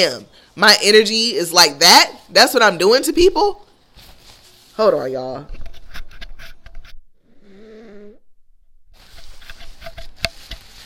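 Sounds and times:
speech: 0.0 - 3.6, 4.8 - 5.7
person blowing nose: 7.4 - 8.2.

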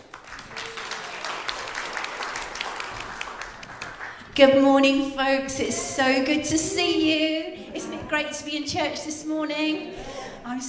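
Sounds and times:
church congregation applause welcoming a speaker: 0.0 - 4.4
speech: 4.4 - 7.5, 8.1 - 10.6.

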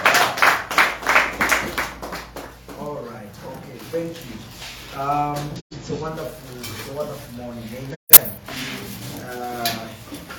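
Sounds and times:
audience clapping: 0.0 - 2.8
speech: 4.0 - 8.2.

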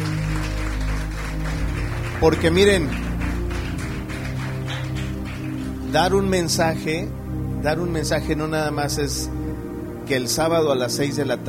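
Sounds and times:
audience applause: 0.0 - 6.0
speech: 2.2 - 3.1, 5.9 - 11.4.

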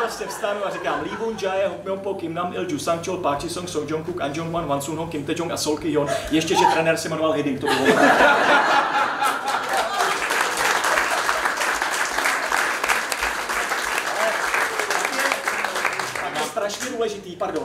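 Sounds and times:
laughter: 0.0 - 1.7, 6.0 - 7.0, 7.6 - 13.2
speech: 0.1 - 9.4, 17.3 - 17.6
audience applause: 8.7 - 16.5.

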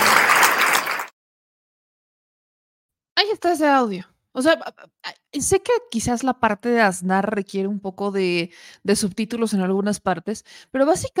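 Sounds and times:
audience applause: 0.0 - 1.1
speech: 3.2 - 11.1.

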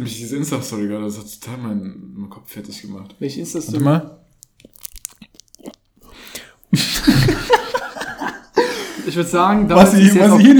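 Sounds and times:
speech: 0.0 - 4.8, 9.1 - 10.5
crunching a lollipop: 3.7 - 6.7
laughter: 6.7 - 9.3.

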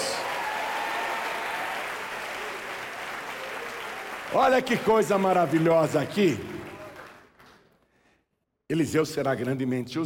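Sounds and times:
audience applauding: 0.0 - 7.7
speech: 4.3 - 6.6, 8.7 - 10.0.

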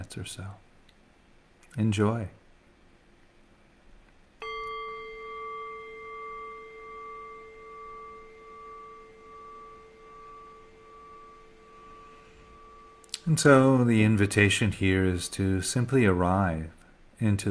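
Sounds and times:
speech: 0.1 - 0.7, 1.7 - 2.4, 13.3 - 17.4
meditation bell being rung: 4.4 - 14.6.

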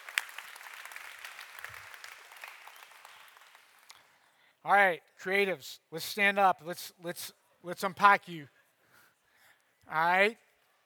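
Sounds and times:
audience applause: 0.0 - 3.9
speech: 4.6 - 8.6, 9.9 - 10.4.

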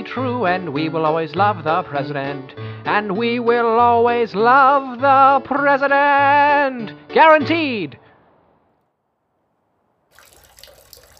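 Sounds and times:
speech: 0.1 - 8.0
water leaking indoors into a radio station, trickling and splashing: 10.1 - 11.1.

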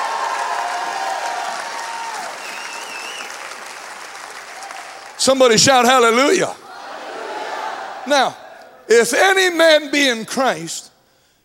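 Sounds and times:
audience clapping hands: 0.0 - 5.8
speech: 5.2 - 6.6, 8.1 - 10.9.

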